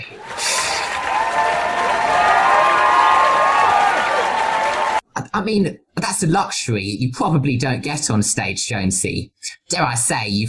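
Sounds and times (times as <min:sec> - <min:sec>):
raucous crowd applause: 0:00.0 - 0:05.0
speech: 0:05.4 - 0:10.4.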